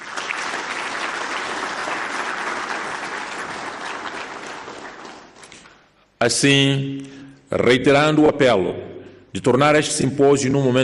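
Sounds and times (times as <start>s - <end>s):
audience applause: 0.0s - 5.6s
speech: 6.2s - 10.8s.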